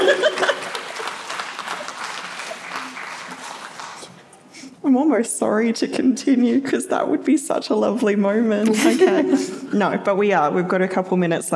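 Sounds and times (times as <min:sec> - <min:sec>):
laughter: 0:00.0 - 0:03.7, 0:08.7 - 0:09.7
audience clapping: 0:00.0 - 0:04.4
speech: 0:04.9 - 0:11.5.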